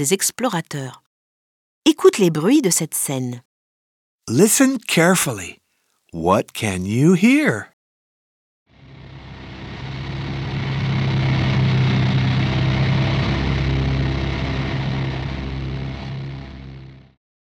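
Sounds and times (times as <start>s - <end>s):
speech: 0.0s - 1.0s, 1.8s - 3.5s, 4.3s - 7.7s
airplane: 8.8s - 17.2s.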